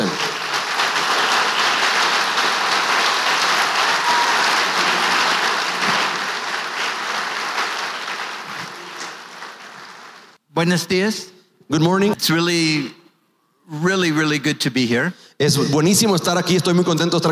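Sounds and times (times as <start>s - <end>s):
audience applause: 0.0s - 10.4s
speech: 10.6s - 13.0s, 13.7s - 17.3s.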